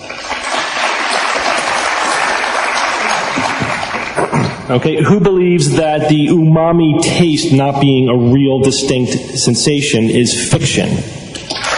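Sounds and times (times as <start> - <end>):
audience applause as a vote: 0.0 - 4.7, 11.5 - 11.7
speech: 4.7 - 11.5.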